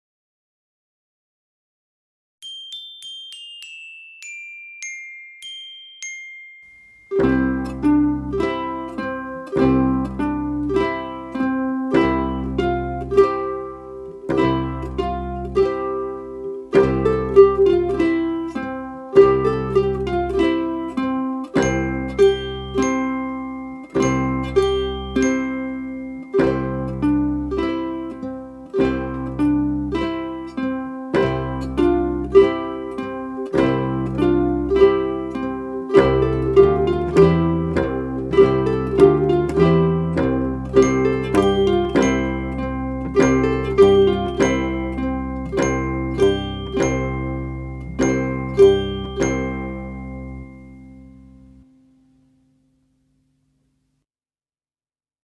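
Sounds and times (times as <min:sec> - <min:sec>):
instrumental nursery tune: 0:02.4 - 0:52.3.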